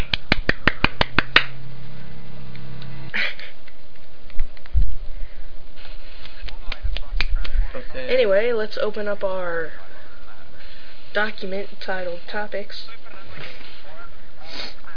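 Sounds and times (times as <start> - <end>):
one-handed clap: 0.0 - 1.6, 6.2 - 7.6
speech: 8.1 - 9.8, 11.1 - 13.5.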